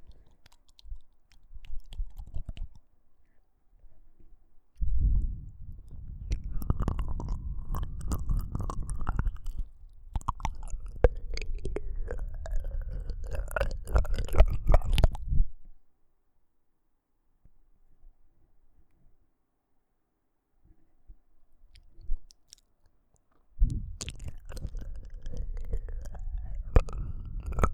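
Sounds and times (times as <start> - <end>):
ASMR ear licking sounds: 0.0 - 2.8, 5.9 - 15.3, 23.6 - 27.7.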